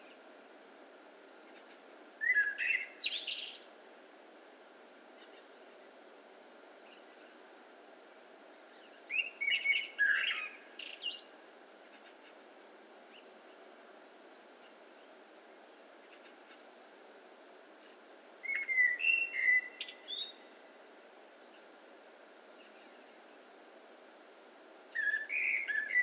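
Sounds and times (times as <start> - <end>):
background hiss: 0.0 - 26.0
Eurasian blackbird singing: 2.2 - 3.6, 9.1 - 11.3, 18.4 - 20.6, 25.0 - 26.0.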